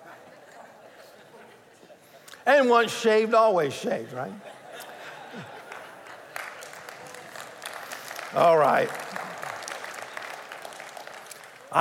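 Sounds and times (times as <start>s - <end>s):
laughter: 0.0s - 2.1s, 4.2s - 7.4s
speech: 2.5s - 4.5s, 8.4s - 9.1s
audience clapping: 5.4s - 11.8s.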